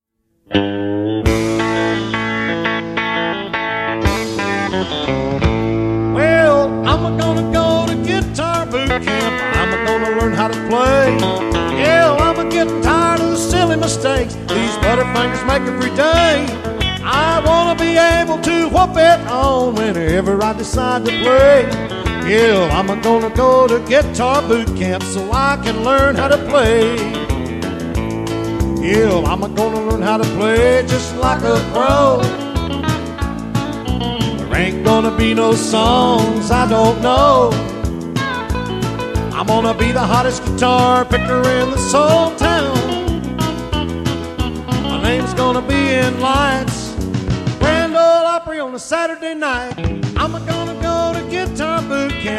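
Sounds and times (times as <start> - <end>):
guitar: 0.2 - 52.3.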